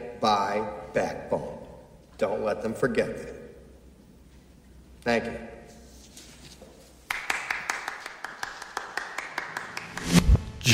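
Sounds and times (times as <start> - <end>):
speech: 0.2 - 1.6, 2.2 - 3.4, 5.0 - 5.5
one person clapping after a speech: 7.1 - 10.3.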